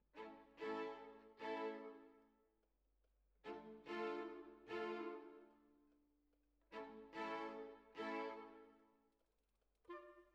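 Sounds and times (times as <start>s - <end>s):
violins: 0.0s - 2.2s, 3.4s - 5.7s, 6.7s - 8.8s.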